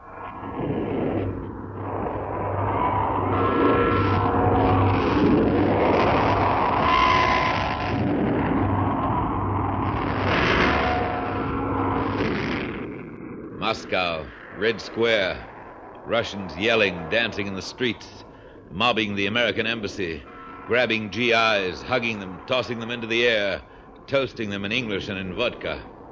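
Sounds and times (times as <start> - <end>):
2,000 saluting cannons roaring: 0.4 - 23.9
speech: 13.7 - 25.9.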